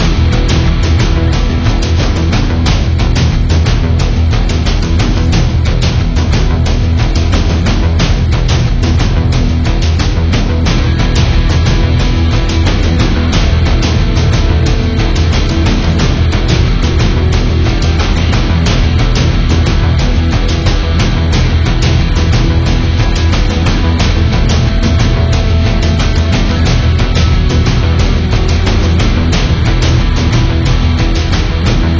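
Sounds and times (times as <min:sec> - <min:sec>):
tense music: 0:00.0 - 0:31.9.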